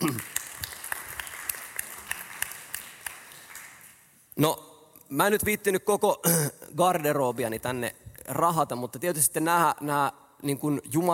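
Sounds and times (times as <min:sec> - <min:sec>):
audience applause: 0:00.0 - 0:03.9
speech: 0:04.4 - 0:11.1.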